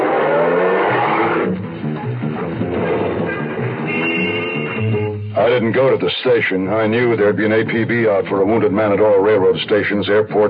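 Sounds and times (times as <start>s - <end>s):
taxi driving off through city streets: 0.0s - 5.6s
busy traffic: 0.0s - 6.6s
speech: 5.4s - 10.4s.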